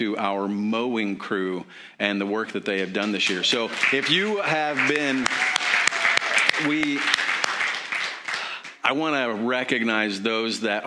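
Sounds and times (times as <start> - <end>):
speech: 0.0 - 5.5, 6.6 - 7.2, 8.9 - 10.8
church congregation applauding its mowing crew: 2.7 - 8.8.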